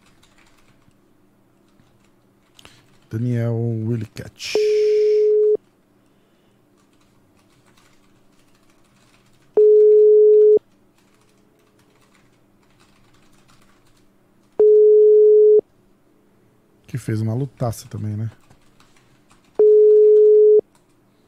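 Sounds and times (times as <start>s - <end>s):
speech: 3.1s - 4.7s, 17.1s - 18.5s
telephone ringback tone on an unanswered call: 4.6s - 5.6s, 9.6s - 10.6s, 14.6s - 15.6s, 19.6s - 20.6s.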